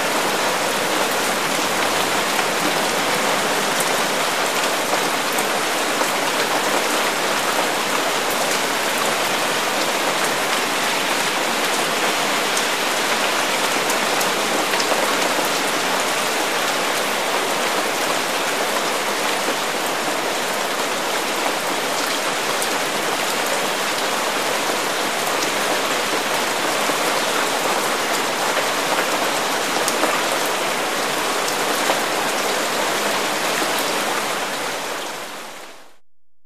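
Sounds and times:
heavy rain on grass: 0:00.0 - 0:36.0.

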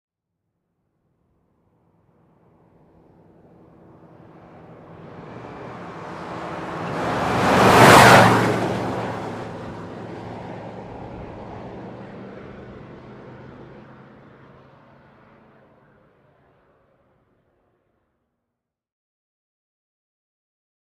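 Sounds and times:
Ford Expedition driving very fast: 0:02.3 - 0:17.4.

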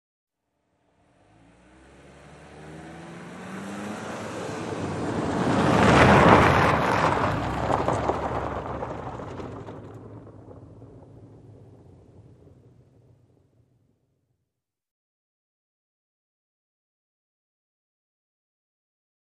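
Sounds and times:
sedan driving on pavement and gravel at medium speed: 0:01.1 - 0:13.7.

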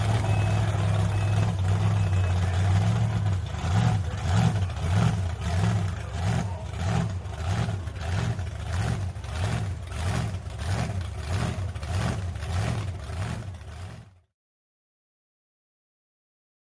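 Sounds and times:
monster truck racing crowds: 0:00.0 - 0:11.0
monster trucks idling and revving: 0:00.0 - 0:14.3.

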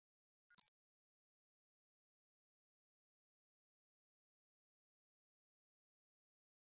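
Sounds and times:
flash beep: 0:00.5 - 0:00.7.

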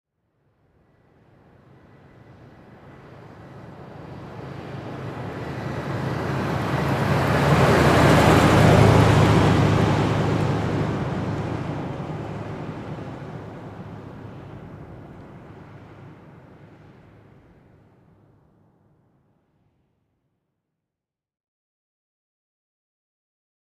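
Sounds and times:
Ford Expedition passing slowly: 0:00.6 - 0:18.9.

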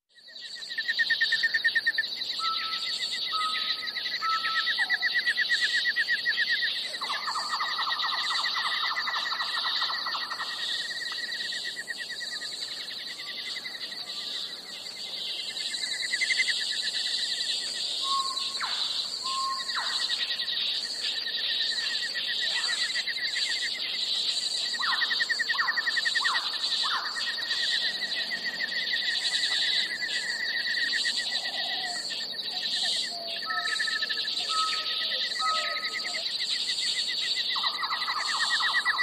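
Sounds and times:
night jungle ambience: 0:00.0 - 0:39.0.

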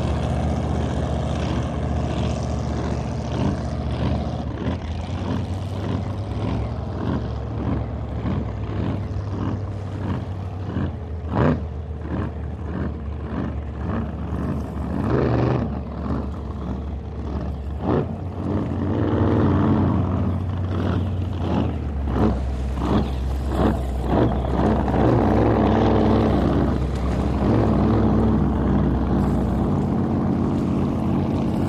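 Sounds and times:
drag boat racing ambience: 0:00.0 - 0:31.6.

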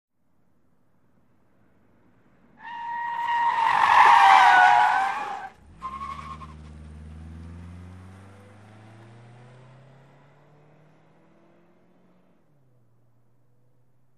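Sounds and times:
sedan skidding: 0:02.6 - 0:08.5.

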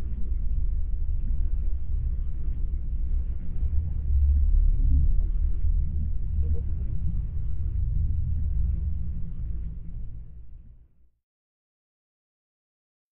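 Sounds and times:
thick underwater ambience: 0:00.0 - 0:10.9.

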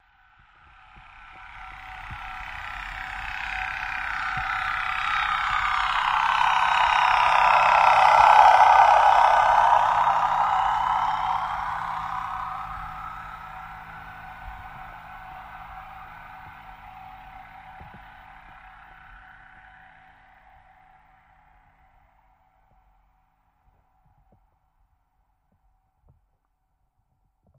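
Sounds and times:
torpedo jet passing by: 0:00.8 - 0:21.4.

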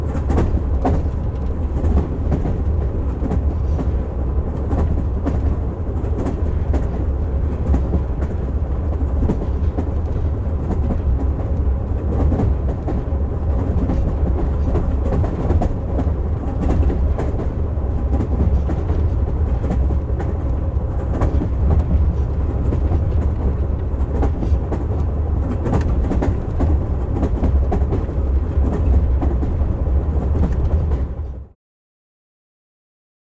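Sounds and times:
steam train boxcar: 0:00.0 - 0:31.6.

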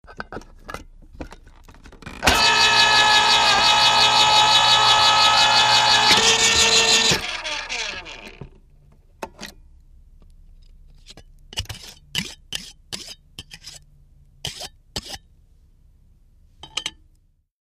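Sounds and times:
can opener opening and scraping a can: 0:02.2 - 0:08.5.

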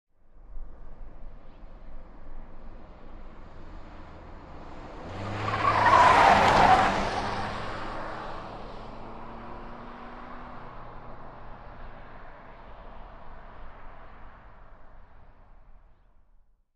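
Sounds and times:
Nissan Sentra compact car driving hard: 0:03.1 - 0:15.2.

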